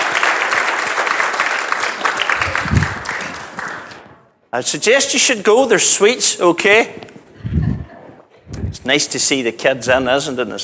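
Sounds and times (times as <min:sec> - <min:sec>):
audience clapping for children: 0:00.0 - 0:04.3
speech: 0:04.5 - 0:07.2, 0:08.8 - 0:10.6.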